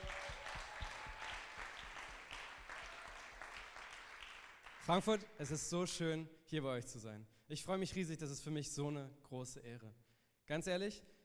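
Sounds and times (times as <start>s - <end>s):
audience applause: 0.0s - 4.9s
speech: 4.8s - 11.2s.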